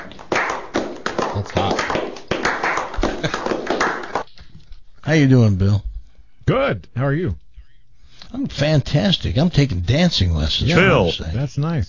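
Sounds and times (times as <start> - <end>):
round of crowd applause greeting a guest: 0.0 - 4.2
speech: 1.4 - 2.1, 5.1 - 5.9, 6.5 - 7.4, 8.3 - 11.8.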